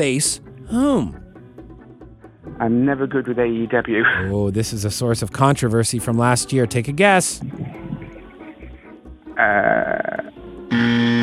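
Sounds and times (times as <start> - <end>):
speech: 0.0 - 1.2, 2.6 - 7.8
harsh quiz-show buzzer: 10.7 - 11.2.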